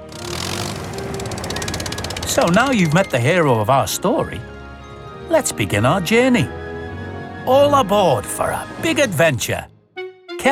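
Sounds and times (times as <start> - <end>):
rhythmic clatter: 0.0 - 4.4
mobile crane petrol engine running: 0.0 - 9.4
speech: 2.3 - 4.5, 5.3 - 6.6, 7.4 - 9.7.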